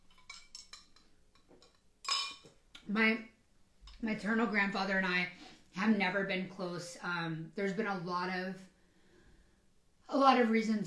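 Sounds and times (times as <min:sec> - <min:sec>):
glass clattering against a hard surface: 0:00.0 - 0:02.6
glass clinking: 0:00.0 - 0:02.6
speech: 0:02.9 - 0:03.3, 0:04.0 - 0:08.7, 0:10.1 - 0:10.8.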